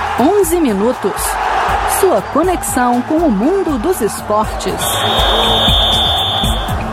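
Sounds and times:
speech: 0.2s - 6.8s
sports program long shrill whistle: 4.8s - 6.7s.

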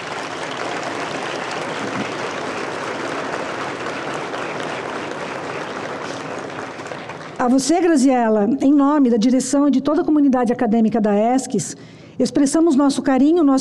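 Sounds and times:
crowd round of applause: 0.0s - 7.8s
speech: 7.4s - 13.5s.

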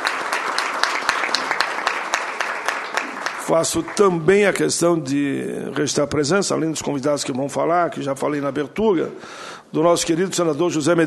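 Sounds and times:
audience applause: 0.0s - 4.6s
speech: 3.5s - 11.0s.

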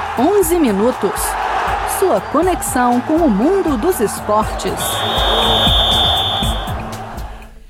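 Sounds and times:
speech: 0.2s - 6.1s
whistle blowing: 4.6s - 6.9s.

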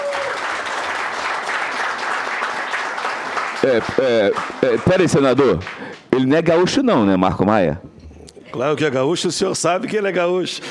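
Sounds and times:
round of applause: 0.0s - 6.1s
speech: 3.6s - 7.9s, 8.5s - 10.6s.

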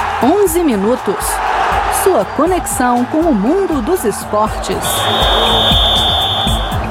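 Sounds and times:
speech: 0.2s - 6.2s
whistle: 4.8s - 6.8s.

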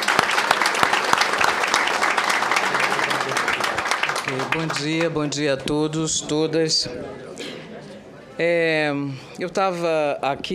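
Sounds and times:
applause: 0.0s - 5.2s
speech: 4.3s - 7.5s, 8.4s - 10.5s.

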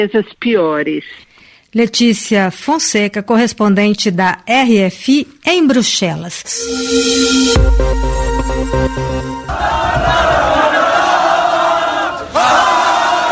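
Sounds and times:
speech: 0.0s - 10.4s
blaring horn-like tones: 6.6s - 11.1s
French football fans celebrating in streets, cheering and shouting: 9.4s - 13.3s.

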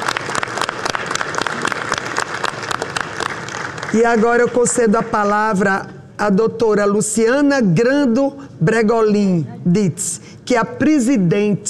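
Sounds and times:
round of applause: 0.0s - 4.8s
speech: 3.9s - 11.6s.

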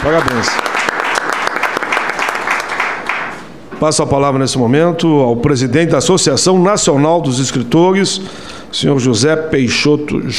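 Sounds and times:
speech: 0.0s - 0.8s, 3.8s - 10.3s
round of applause at a formal gathering: 0.0s - 3.4s.

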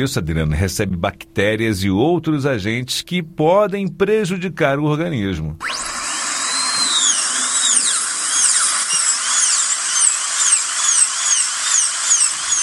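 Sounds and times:
speech: 0.0s - 5.9s
dentist's drill whining: 5.6s - 12.6s.

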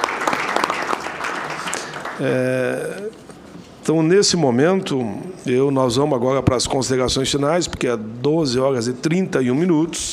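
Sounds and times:
round of applause: 0.0s - 2.6s
speech: 2.2s - 10.1s.

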